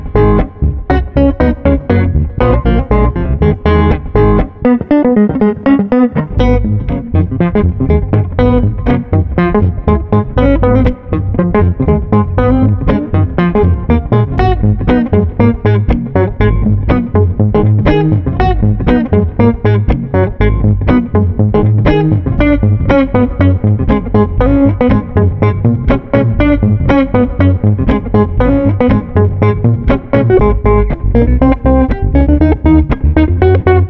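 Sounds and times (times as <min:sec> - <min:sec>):
funky street bass guitar at 120 bpm: 0:00.0 - 0:33.8.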